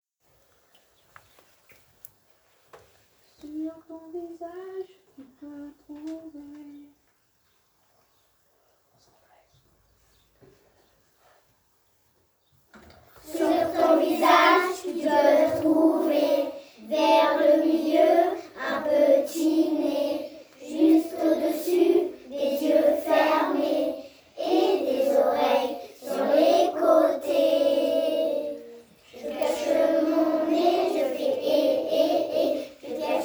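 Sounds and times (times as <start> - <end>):
choir singing: 13.2 - 33.2.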